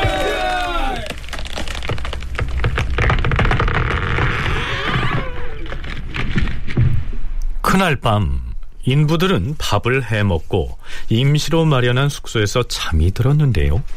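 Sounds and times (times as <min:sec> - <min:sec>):
pine tree cracking and falling: 0:00.0 - 0:07.1
speech: 0:07.8 - 0:13.9.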